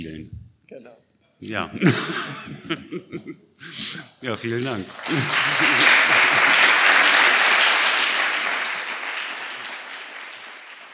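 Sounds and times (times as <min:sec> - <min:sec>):
speech: 0:00.0 - 0:06.1
laughter: 0:01.8 - 0:03.8, 0:05.0 - 0:08.6
crowd applause: 0:04.8 - 0:10.9.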